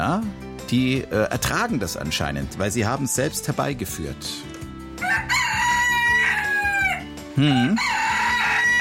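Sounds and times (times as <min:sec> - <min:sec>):
speech: 0:00.0 - 0:04.6, 0:07.4 - 0:08.0
rooster crowing: 0:05.0 - 0:08.7.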